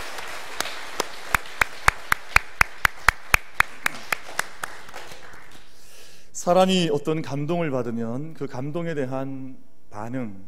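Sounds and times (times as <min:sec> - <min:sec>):
audience clapping in steady rhythm: 0:00.0 - 0:06.0
speech: 0:06.4 - 0:10.4.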